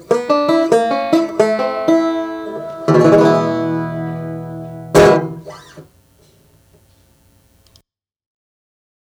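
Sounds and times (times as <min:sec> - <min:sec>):
1919 Orpheum Style 1 banjo guitar natural: 0:00.0 - 0:07.2.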